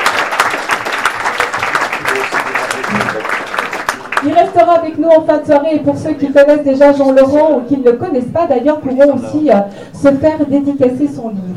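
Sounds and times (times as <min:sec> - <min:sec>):
audience applause in a bookshop: 0:00.0 - 0:04.8
speech: 0:04.2 - 0:11.5.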